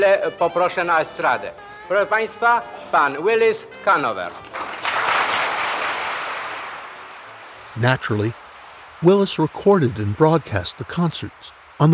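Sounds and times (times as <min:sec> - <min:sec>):
speech: 0:00.0 - 0:04.7, 0:07.8 - 0:08.4, 0:09.0 - 0:11.9
concert hall audience applause: 0:04.4 - 0:11.9.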